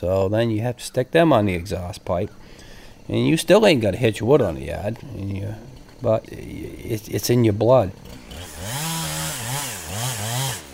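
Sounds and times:
speech: 0:00.0 - 0:08.8
chainsaw running: 0:04.4 - 0:10.7.

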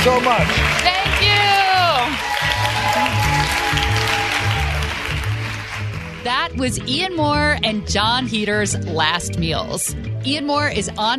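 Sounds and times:
speech: 0:00.0 - 0:02.2, 0:06.2 - 0:11.1
audience applause: 0:00.0 - 0:06.5.

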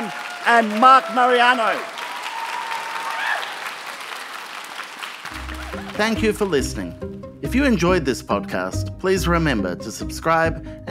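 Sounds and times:
faint whistles or cheers: 0:00.0 - 0:04.8
audience applause: 0:00.0 - 0:06.9
speech: 0:00.4 - 0:01.9, 0:06.0 - 0:10.8.

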